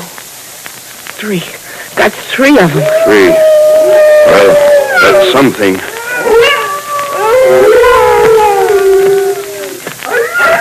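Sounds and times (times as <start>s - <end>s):
speech: 1.2s - 6.3s
several wolves howling in chorus: 2.8s - 10.5s.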